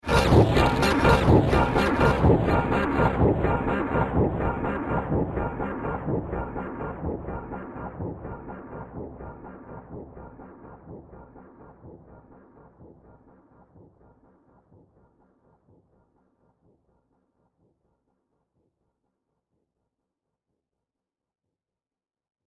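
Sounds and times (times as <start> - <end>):
rhythmic industrial noise: 0.0 - 9.4.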